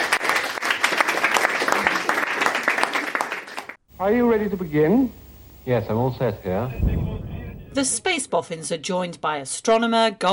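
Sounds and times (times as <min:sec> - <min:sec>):
audience applause: 0:00.0 - 0:05.1
speech: 0:04.0 - 0:10.3.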